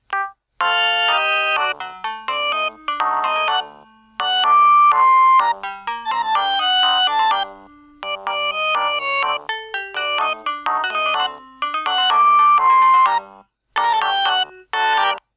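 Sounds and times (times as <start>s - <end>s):
Siemens A52 tango ringtone: 0.1s - 15.3s.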